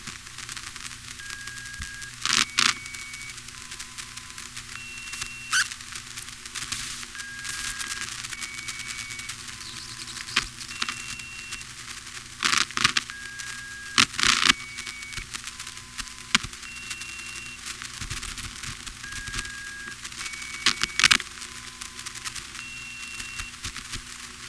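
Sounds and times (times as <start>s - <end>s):
constant hiss: 0.0s - 24.4s
telephone line static bursts: 0.0s - 24.4s
telephone network tones at several pitches: 1.2s - 5.7s, 7.2s - 11.7s, 12.4s - 17.6s, 19.0s - 23.6s
sharp clicks: 1.2s - 5.8s, 7.2s - 11.7s, 12.4s - 24.1s.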